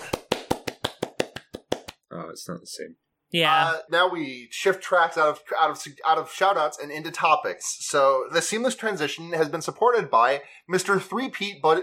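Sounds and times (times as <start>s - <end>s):
one person clapping as applause: 0.0s - 2.0s
speech: 2.3s - 11.8s.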